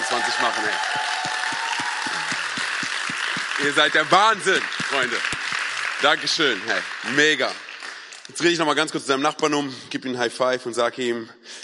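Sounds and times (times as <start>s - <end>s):
audience applause: 0.0s - 8.8s
speech: 0.2s - 1.5s, 3.6s - 5.4s, 6.0s - 7.6s, 8.3s - 11.4s.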